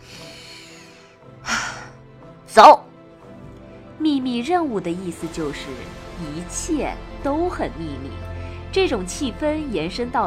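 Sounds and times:
deep breath: 0.0 - 2.0
speech: 2.6 - 2.8, 4.0 - 10.2.

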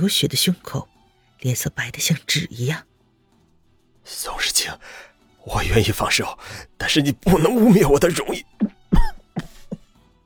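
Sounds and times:
speech: 0.0 - 2.9, 4.0 - 9.5
coughing: 7.2 - 9.9.

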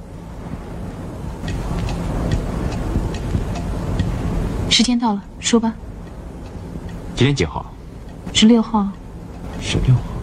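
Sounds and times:
constant low rumbling hum: 0.0 - 10.2
wristwatch ticking: 1.4 - 5.0, 5.8 - 10.2
speech: 4.8 - 5.8, 7.2 - 9.0, 9.6 - 10.1.

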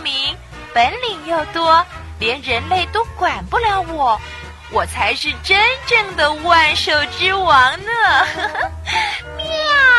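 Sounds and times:
speech: 0.8 - 9.3
cat meowing: 9.4 - 9.9.

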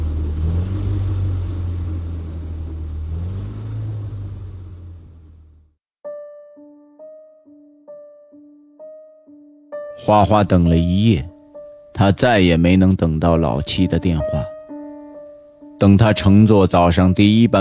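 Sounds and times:
car speeding past with engine roaring: 0.0 - 5.7
speech: 10.0 - 11.3, 12.0 - 14.5, 15.8 - 17.5.

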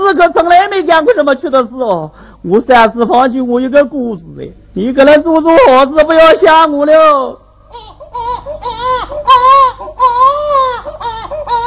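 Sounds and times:
speech: 0.1 - 11.6
small child crying in a Shanghai opera scene: 7.7 - 11.6.

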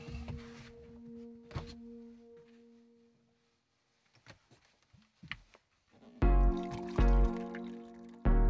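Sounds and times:
water pouring: 6.4 - 8.3.

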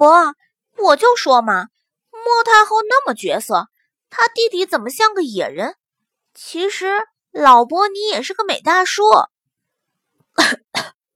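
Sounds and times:
speech: 0.0 - 5.8, 6.4 - 9.3, 10.4 - 11.0
heavy coughs: 10.4 - 11.0.

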